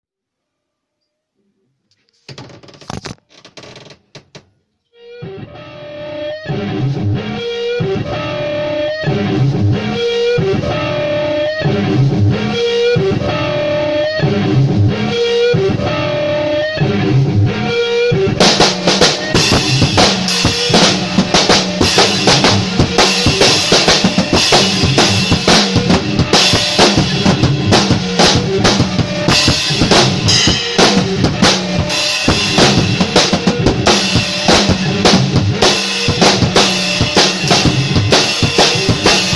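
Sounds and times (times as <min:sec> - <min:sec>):
noise rock music: 0:05.0 - 0:39.3.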